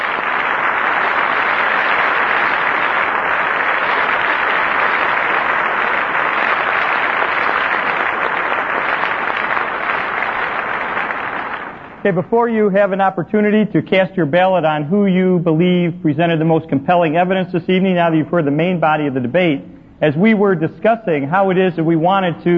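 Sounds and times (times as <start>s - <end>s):
applause: 0.0s - 12.3s
speech: 12.1s - 22.5s.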